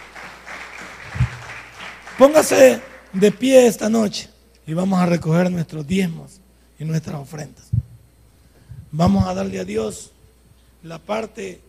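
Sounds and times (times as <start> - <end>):
audience applause: 0.0 - 3.2
speech: 2.2 - 7.8, 8.9 - 10.2, 10.8 - 11.6.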